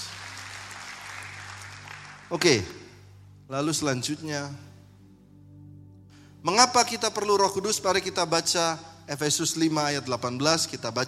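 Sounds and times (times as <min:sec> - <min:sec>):
crowd in sustained dense applause: 0:00.0 - 0:02.6
speech: 0:02.3 - 0:02.8, 0:03.5 - 0:04.7, 0:06.4 - 0:11.0.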